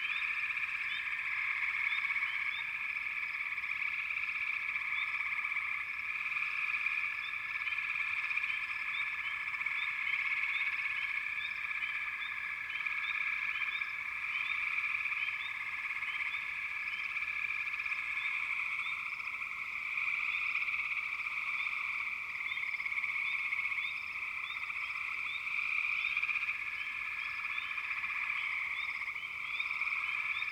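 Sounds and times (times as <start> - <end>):
frog chorus: 0.0 - 30.5.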